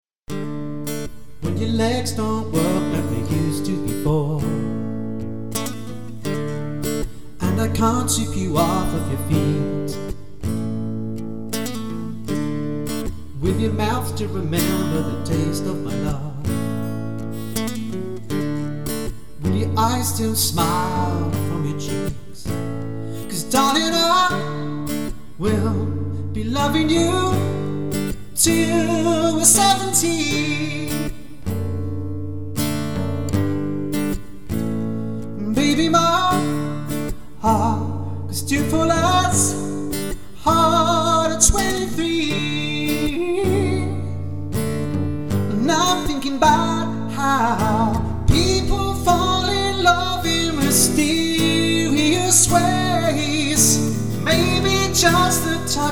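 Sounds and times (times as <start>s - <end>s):
guitarist playing: 0.3s - 55.9s.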